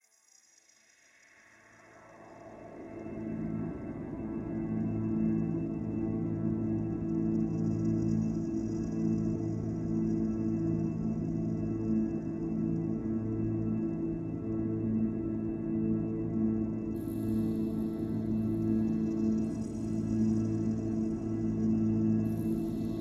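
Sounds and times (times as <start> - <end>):
drone: 1.9 - 22.9.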